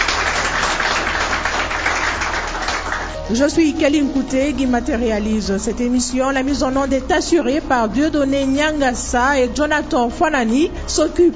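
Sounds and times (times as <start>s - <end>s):
crowd applause: 0.0s - 3.3s
speech: 3.3s - 11.3s.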